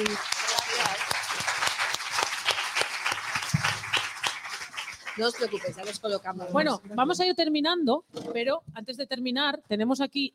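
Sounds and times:
speech: 0.0 - 0.3, 5.2 - 10.3
audience applause: 0.0 - 6.1.

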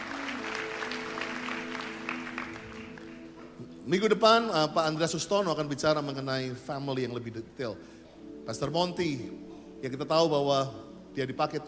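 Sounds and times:
audience applause: 0.0 - 3.3
speech: 3.9 - 11.6.

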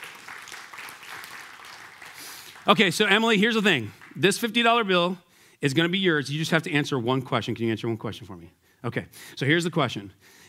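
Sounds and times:
audience applause: 0.0 - 4.4
speech: 2.6 - 10.4.

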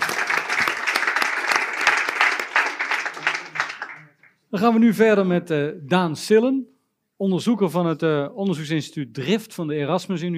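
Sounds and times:
crowd applauding: 0.0 - 4.4
speech: 4.5 - 10.3.

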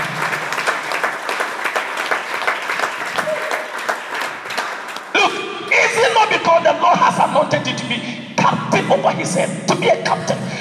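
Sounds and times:
congregation clapping during a Sunday church service: 0.0 - 6.3
speech: 7.4 - 10.5.

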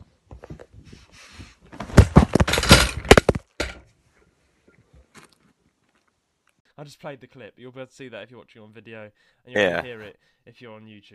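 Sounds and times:
person crashing while falling off a chair: 1.7 - 3.8
speech: 6.8 - 11.1.

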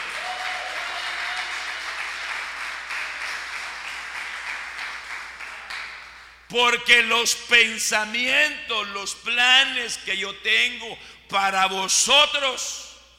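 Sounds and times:
audience applause: 0.0 - 6.1
speech: 6.5 - 12.9.

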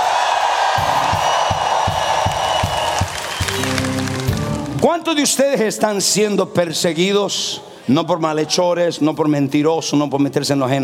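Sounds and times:
audience shouting a victory cheer: 0.0 - 4.9
speech: 4.8 - 10.8.

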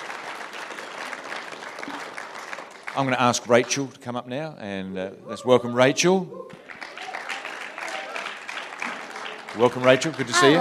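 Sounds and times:
audience applause after a prayer at a pastor-led gathering: 0.0 - 4.0, 6.5 - 10.6
speech: 3.0 - 6.6, 9.6 - 10.6.

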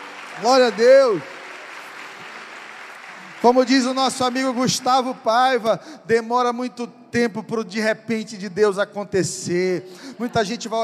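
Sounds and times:
audience applauding: 0.0 - 5.7
speech: 0.4 - 1.3, 3.4 - 10.8.

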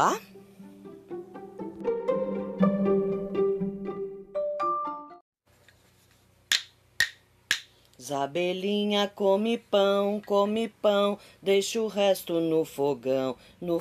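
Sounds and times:
speech: 0.0 - 0.3, 8.1 - 13.7
bright tuneful melodic phrase: 0.4 - 5.2
sharp percussive claps: 6.5 - 7.8.

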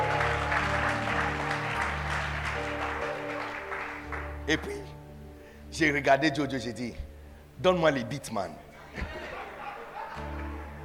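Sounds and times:
audience cheering: 0.0 - 4.3
speech: 4.5 - 5.0, 5.7 - 7.0, 7.6 - 9.2
laughter: 8.7 - 10.8.

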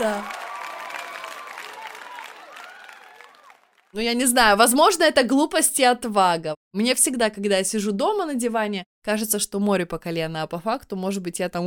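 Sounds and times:
speech: 0.0 - 0.4, 3.9 - 11.6
inserted applause sound effect: 0.0 - 4.0.

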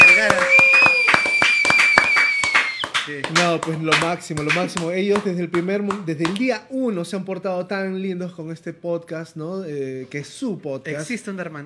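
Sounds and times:
applause: 0.0 - 6.4
speech: 3.1 - 11.6.

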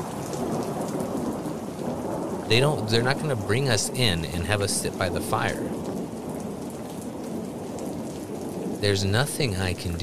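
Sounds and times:
low rolling thunder rumble: 0.0 - 10.0
pouring rain in a thunderstorm: 0.0 - 10.0
speech: 2.5 - 5.8, 8.8 - 10.0.

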